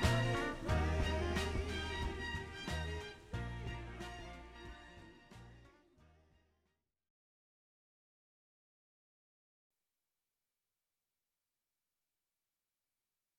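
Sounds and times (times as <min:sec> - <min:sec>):
instrumental music: 0:00.0 - 0:06.4.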